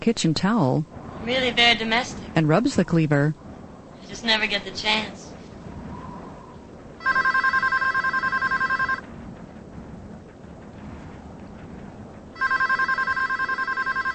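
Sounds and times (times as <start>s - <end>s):
speech: 0.0s - 3.4s, 4.1s - 5.3s
faint noise: 0.0s - 14.1s
telephone bell ringing with trilling electronic rings: 7.0s - 9.0s, 12.4s - 14.1s.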